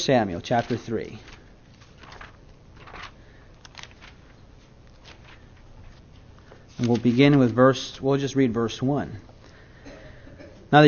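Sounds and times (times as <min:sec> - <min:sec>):
speech: 0:00.0 - 0:01.3, 0:06.8 - 0:09.3
low steady hum: 0:00.0 - 0:10.8
Bible pages rustling as they are turned: 0:00.4 - 0:07.9.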